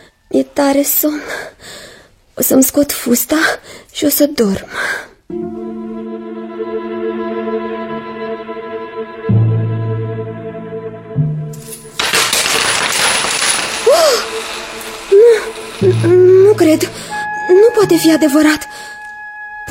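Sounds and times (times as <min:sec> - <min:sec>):
speech: 0:00.3 - 0:01.8, 0:02.4 - 0:05.8, 0:15.8 - 0:18.9
low droning notes: 0:05.3 - 0:11.8, 0:15.5 - 0:19.6
dense bright shower of jingling coins: 0:11.7 - 0:17.2
ringing chime-like tone: 0:14.1 - 0:19.6.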